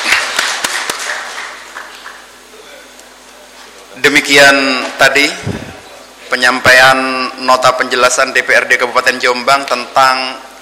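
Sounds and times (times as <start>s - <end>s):
audience clapping at a DPRD council meeting in Jombang Regency: 0.0s - 2.4s
speech: 4.0s - 5.6s, 6.4s - 10.5s.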